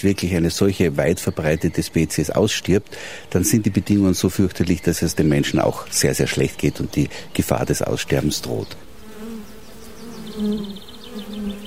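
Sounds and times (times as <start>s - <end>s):
speech: 0.0s - 8.9s, 10.4s - 10.8s
bees buzzing: 3.0s - 11.6s.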